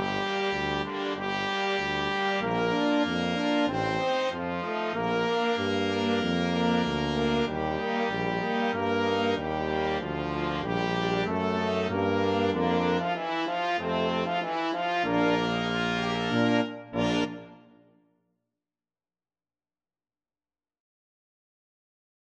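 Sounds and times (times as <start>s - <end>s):
brass quintet playing: 0.0s - 17.8s.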